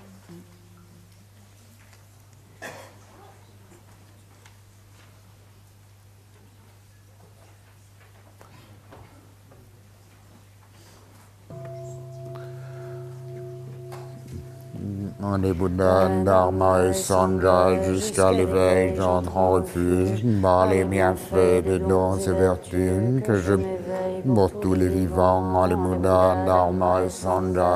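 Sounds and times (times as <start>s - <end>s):
gong struck and ringing: 11.5s - 17.2s
constant low hum: 11.5s - 22.4s
speech: 15.2s - 27.7s.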